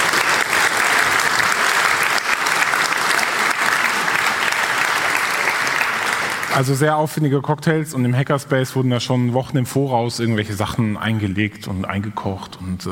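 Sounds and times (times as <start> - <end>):
audience applause: 0.0 - 6.9
speech: 6.6 - 12.9.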